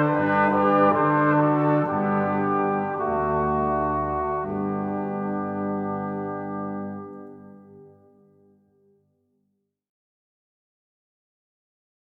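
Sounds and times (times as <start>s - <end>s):
wind instruments playing: 0.0s - 8.2s.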